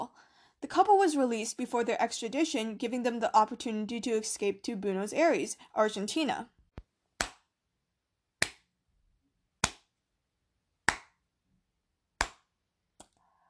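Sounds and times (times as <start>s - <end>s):
speech: 0.7s - 6.6s
slow sharp loud hand claps: 7.2s - 7.4s, 9.6s - 9.9s, 10.9s - 11.2s, 12.2s - 13.1s.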